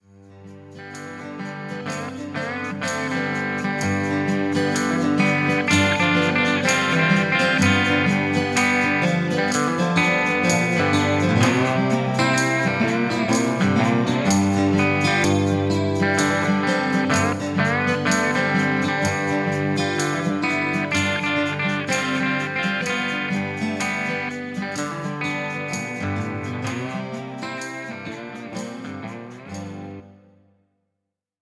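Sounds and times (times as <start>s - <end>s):
country blues music: 0.3s - 30.1s.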